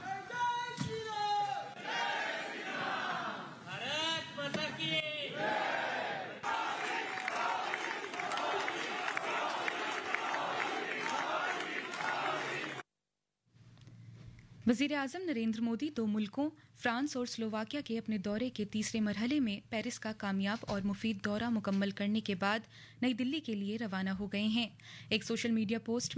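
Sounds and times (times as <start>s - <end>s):
crowd cheering in Paris: 0.0s - 4.0s, 5.0s - 12.8s
Indian community in France chanting welcome slogans in Paris: 1.5s - 3.7s, 5.2s - 12.8s
speech: 14.7s - 26.1s.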